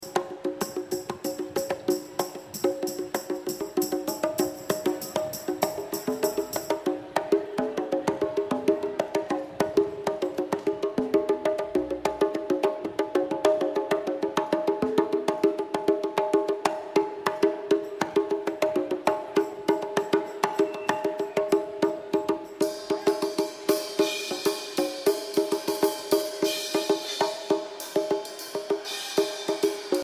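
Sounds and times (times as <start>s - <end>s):
drums: 0.0s - 30.0s.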